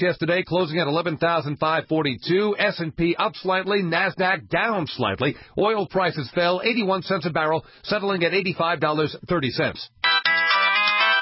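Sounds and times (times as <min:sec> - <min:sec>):
speech: 0:00.0 - 0:10.0
cell phone ringtone: 0:10.0 - 0:11.1.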